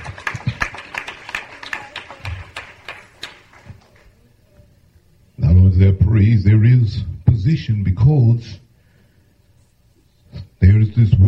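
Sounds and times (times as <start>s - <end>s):
group of people clapping in praise: 0.0s - 4.4s
speech: 5.8s - 8.6s, 10.6s - 11.2s.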